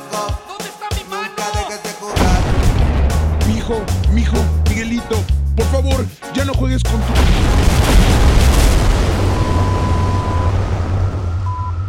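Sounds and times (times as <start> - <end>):
bomb explosion with broad roaring blast: 2.2 - 5.2, 7.1 - 11.6
speech: 3.7 - 8.2.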